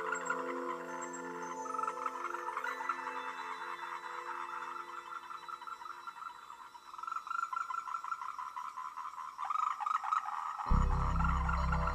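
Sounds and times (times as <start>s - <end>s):
frogs croaking in chorus: 0.0s - 11.9s.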